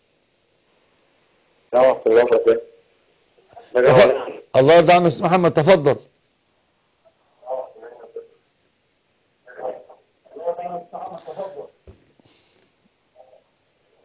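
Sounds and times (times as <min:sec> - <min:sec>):
speech: 0:01.7 - 0:02.7, 0:03.7 - 0:06.1
television playing in caller's background: 0:01.7 - 0:06.0, 0:07.1 - 0:08.4, 0:09.4 - 0:12.2, 0:13.1 - 0:14.0.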